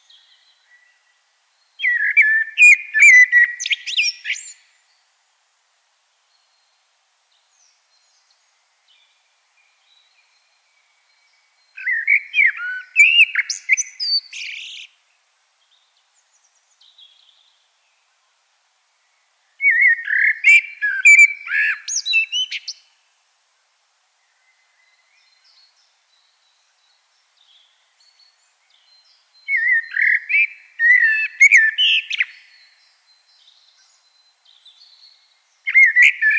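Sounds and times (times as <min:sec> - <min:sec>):
common blackbird singing: 0:00.0 - 0:04.7, 0:07.6 - 0:15.0, 0:19.6 - 0:22.9, 0:24.3 - 0:36.3.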